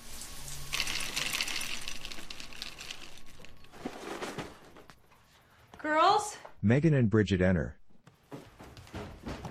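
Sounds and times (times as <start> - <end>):
cereal poured into a bowl in a kitchen: 0.6 - 3.7
speech: 6.6 - 7.8.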